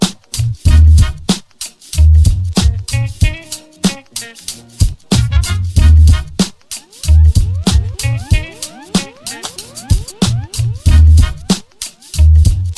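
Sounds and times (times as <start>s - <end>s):
beat: 0.0s - 12.7s.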